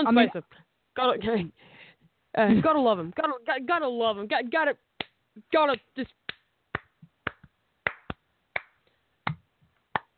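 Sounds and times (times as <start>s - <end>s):
speech: 0.0s - 6.2s
slow clapping from one person: 5.0s - 10.1s.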